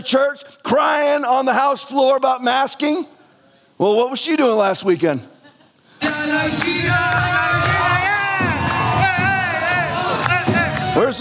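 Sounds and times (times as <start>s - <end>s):
speech: 0.0s - 3.2s, 3.8s - 5.3s, 6.1s - 8.0s, 11.0s - 11.1s
large crowd cheering and shouting: 6.6s - 11.1s.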